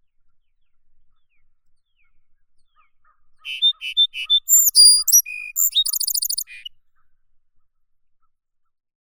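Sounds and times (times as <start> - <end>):
song sparrow Melospiza melodia: 3.5 - 6.7.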